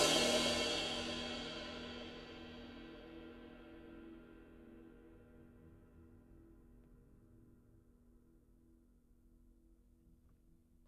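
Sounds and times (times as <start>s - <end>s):
24-inch A cymbal: 0.0s - 6.4s.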